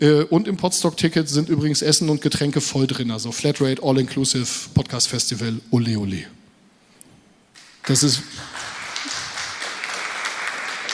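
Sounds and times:
speech: 0.0s - 6.4s, 7.8s - 8.7s
audience applause at a podcast festival: 7.8s - 10.9s.

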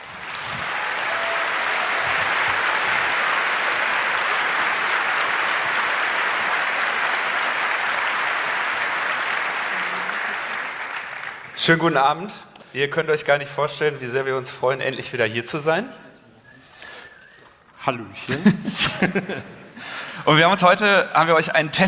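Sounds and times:
audience applause: 0.0s - 11.9s
speech: 11.6s - 16.0s, 17.8s - 19.6s, 20.2s - 21.8s
laughter: 18.3s - 19.9s.

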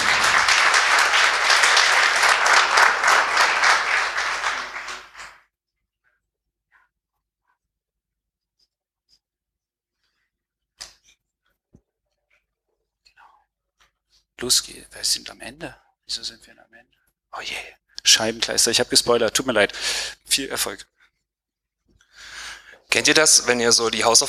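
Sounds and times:
audience applause: 0.0s - 5.4s
speech: 14.4s - 21.0s, 22.9s - 24.2s.

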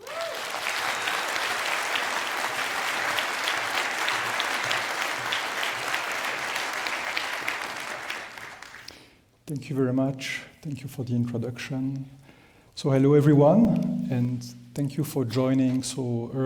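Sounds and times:
large audience applause: 0.0s - 8.9s
speech: 9.5s - 12.2s, 12.8s - 16.4s.

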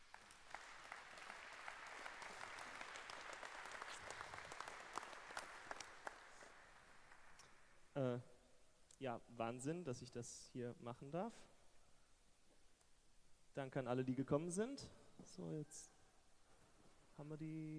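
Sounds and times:
steady crowd applause: 0.0s - 7.4s
speech: 8.0s - 8.3s, 9.0s - 11.5s, 13.6s - 16.0s, 17.2s - 17.7s.

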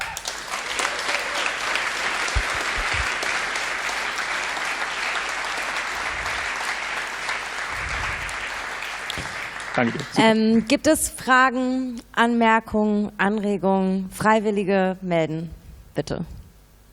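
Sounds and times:
audience applause: 0.0s - 10.3s
speech: 9.8s - 16.4s.

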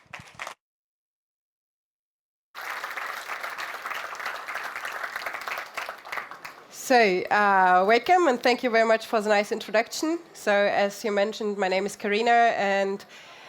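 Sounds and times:
audience applause: 2.6s - 6.8s
speech: 6.9s - 13.3s.

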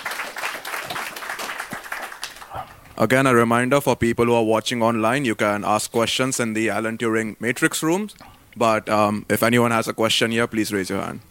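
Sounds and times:
audience applause after a talk at a technical presentation: 0.0s - 2.9s
speech: 3.0s - 11.3s.

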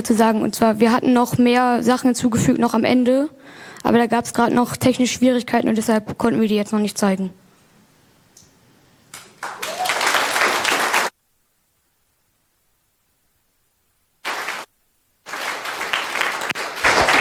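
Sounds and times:
speech: 0.0s - 7.4s
audience applause: 9.2s - 11.1s, 14.2s - 14.7s, 15.3s - 17.1s.

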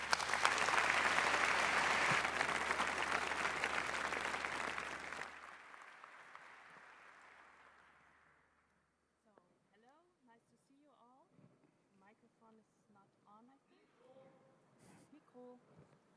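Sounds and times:
audience applause: 0.0s - 8.3s.

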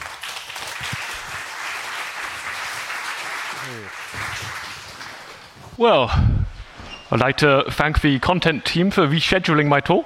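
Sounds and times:
audience round of applause: 0.0s - 5.6s
speech: 3.6s - 4.7s, 5.8s - 6.4s, 7.1s - 10.0s.

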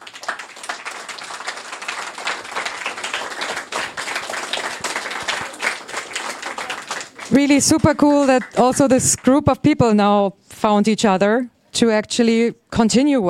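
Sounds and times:
audience applause: 0.0s - 9.4s
speech: 7.3s - 13.2s.

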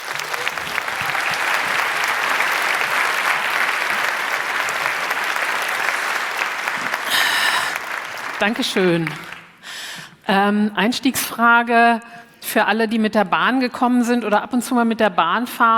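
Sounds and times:
audience applause: 0.0s - 9.6s
speech: 8.4s - 9.3s, 10.3s - 15.7s.

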